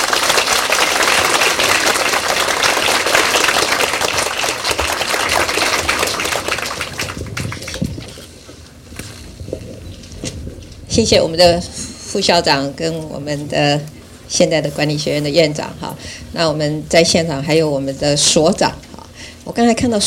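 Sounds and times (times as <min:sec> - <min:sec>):
audience applause welcoming a speaker: 0:00.0 - 0:08.2
speech: 0:11.0 - 0:18.8, 0:19.5 - 0:20.0.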